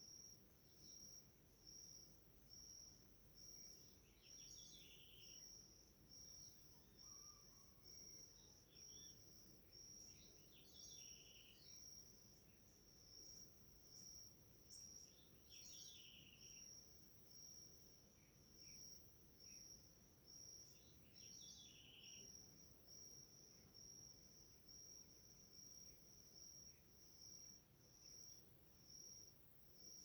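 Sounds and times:
crickets chirping in a village in the Mata Atlântica rainforest: 0.0s - 30.0s.

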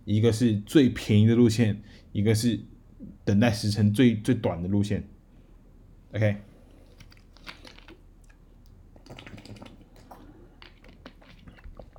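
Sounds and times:
speech: 0.1s - 5.1s, 6.1s - 6.5s
person quietly sipping and swallowing water: 6.4s - 11.9s.

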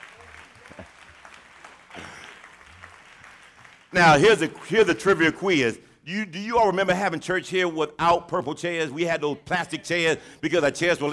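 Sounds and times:
audience applause: 0.0s - 5.5s
speech: 4.0s - 11.1s.

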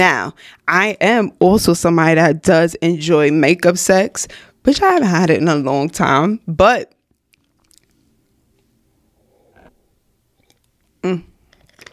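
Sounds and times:
speech: 0.0s - 7.0s, 11.0s - 11.3s
slurping sip of Bling's Boozy drink: 9.0s - 11.9s.

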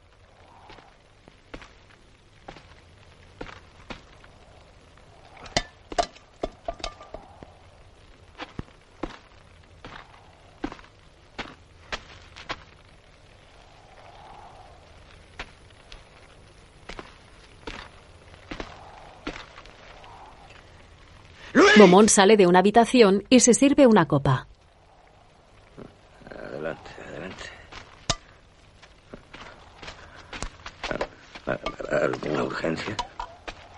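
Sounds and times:
footsteps of a man walking back and forth inside a house: 0.4s - 13.7s, 14.6s - 20.7s, 27.4s - 33.7s
speech: 21.5s - 24.5s.

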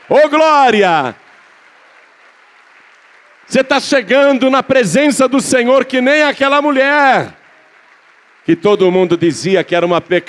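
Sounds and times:
audience applauding: 0.0s - 10.2s
speech: 0.1s - 1.2s, 3.5s - 7.4s, 8.4s - 10.2s.

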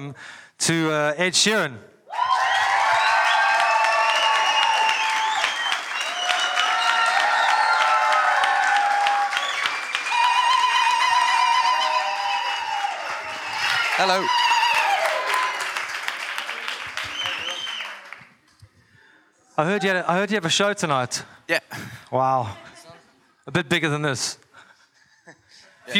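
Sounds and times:
speech: 0.0s - 1.9s, 14.0s - 14.4s, 19.6s - 22.6s, 23.5s - 24.4s
crowd applause: 2.1s - 18.4s.

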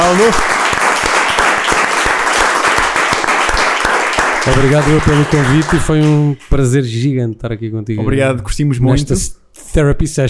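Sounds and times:
audience applause: 0.0s - 6.3s
speech: 0.1s - 0.6s, 4.5s - 10.2s.

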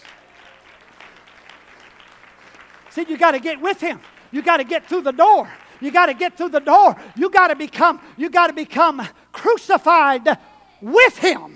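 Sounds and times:
audience clapping: 0.0s - 8.5s
speech: 2.9s - 11.5s.

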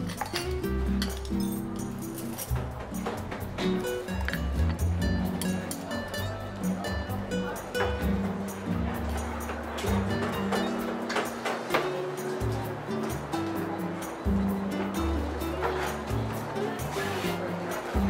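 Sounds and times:
cups and dishes clinking: 0.0s - 6.4s, 9.2s - 13.3s
seaside cafe murmur of overlapping talk: 0.8s - 18.0s.

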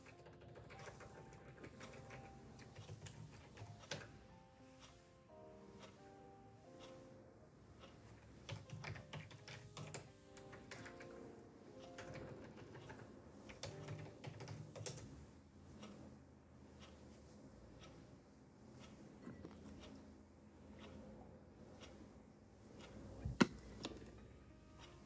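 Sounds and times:
keyboard clicks and taps: 0.0s - 4.3s, 8.1s - 15.2s
soft lofi-style music: 0.0s - 25.0s.

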